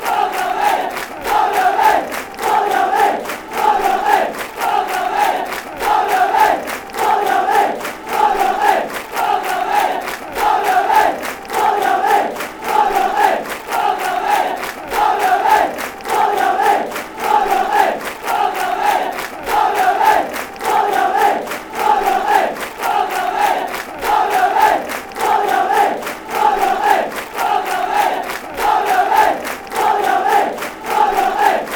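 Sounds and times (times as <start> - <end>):
football fans chanting: 0.0 - 31.7.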